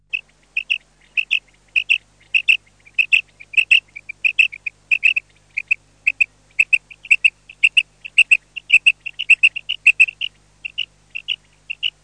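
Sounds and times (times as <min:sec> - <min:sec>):
common quail calling: 0:00.0 - 0:12.0.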